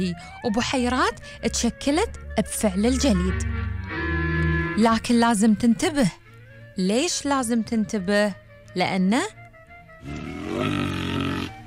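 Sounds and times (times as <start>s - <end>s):
speech: 0.0s - 3.8s, 4.8s - 6.2s, 6.8s - 9.4s, 10.0s - 11.1s
brown bear roaring in the Carpathian Mountains: 10.0s - 11.6s.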